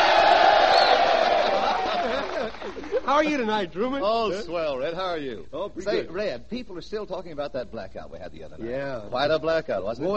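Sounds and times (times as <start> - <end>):
large audience of Army and Navy servicemen shouting ho in unison: 0.0 - 1.9
laughter: 1.2 - 3.4
speech: 3.1 - 10.1.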